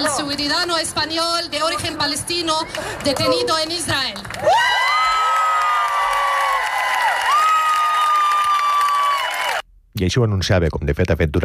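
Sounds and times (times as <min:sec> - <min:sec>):
speech: 0:00.0 - 0:05.0, 0:10.0 - 0:11.4
crowd cheering joyfully: 0:02.5 - 0:09.6.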